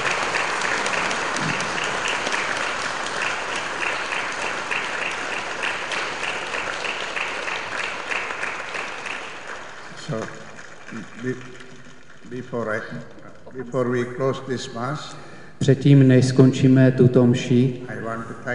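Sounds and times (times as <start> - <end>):
congregation clapping at a church mass: 0.0 - 14.0
speech: 11.2 - 11.6, 12.3 - 18.5.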